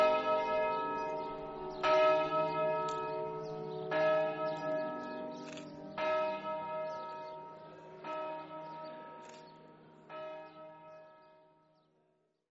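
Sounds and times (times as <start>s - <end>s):
church bells ringing: 0.0s - 11.7s.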